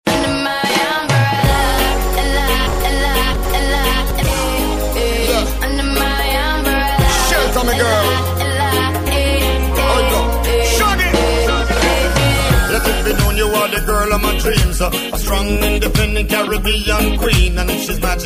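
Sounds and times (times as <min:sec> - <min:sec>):
reggae remix music: 0:00.0 - 0:18.2.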